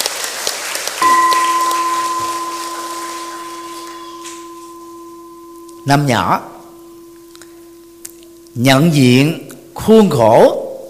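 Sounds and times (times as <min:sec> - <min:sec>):
audience applause: 0:00.0 - 0:03.9
speech: 0:05.8 - 0:06.5, 0:08.6 - 0:10.6.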